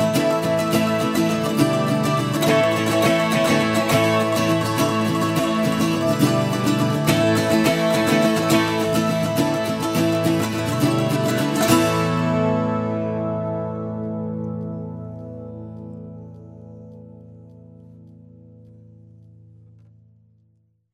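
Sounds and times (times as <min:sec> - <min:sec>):
mandolins playing: 0:00.0 - 0:16.4.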